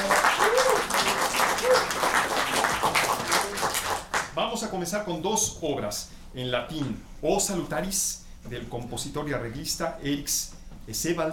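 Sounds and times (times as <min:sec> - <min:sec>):
choir concert audience applause for the accompanying pianist: 0:00.0 - 0:04.3
speech: 0:04.6 - 0:11.3.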